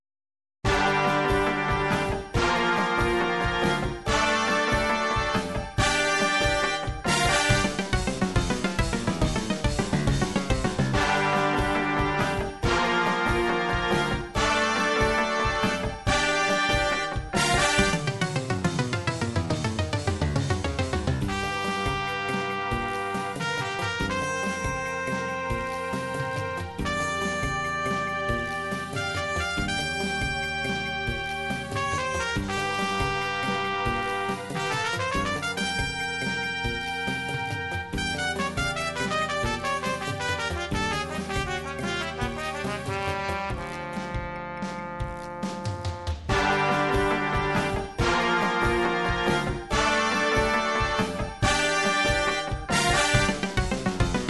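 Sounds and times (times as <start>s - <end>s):
MIDI jazz music: 0.7s - 54.2s.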